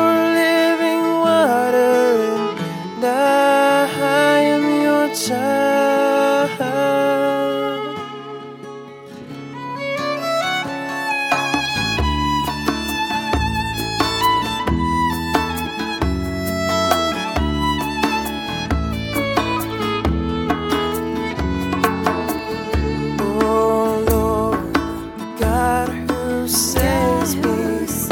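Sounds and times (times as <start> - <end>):
improvisational violin playing with a Christian band: 0.1 - 27.9
Christian band playing: 11.4 - 27.9.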